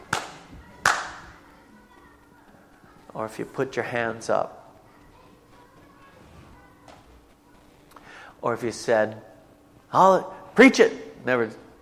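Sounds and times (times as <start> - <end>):
audience clapping: 0.0 - 1.2
speech: 3.2 - 4.6, 8.4 - 9.3, 9.9 - 11.6.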